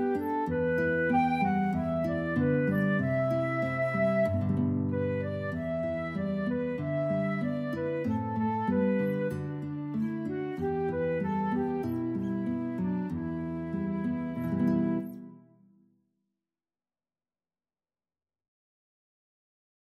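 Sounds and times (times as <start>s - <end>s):
flute in a duet: 0.0s - 15.6s
guitar in a duet: 0.0s - 15.8s.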